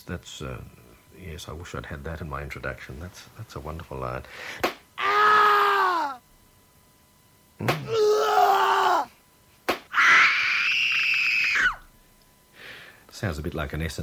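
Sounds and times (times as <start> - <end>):
speech: 0.0 - 4.8, 7.6 - 8.0, 13.2 - 14.0
sharp smack: 4.6 - 4.8, 7.6 - 7.9, 9.7 - 9.9
person screaming and groaning: 5.0 - 6.2, 7.8 - 9.1, 9.9 - 11.8.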